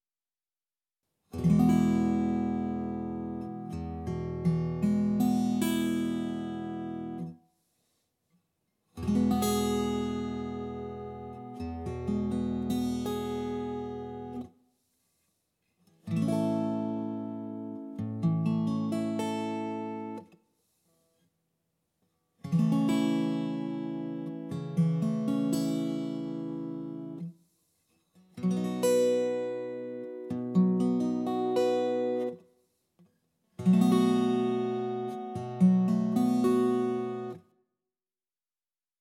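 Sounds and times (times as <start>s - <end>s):
blues guitar in open tunings: 1.4s - 7.3s, 9.0s - 14.4s, 16.1s - 20.2s, 22.5s - 27.2s, 28.4s - 32.4s, 33.6s - 37.4s.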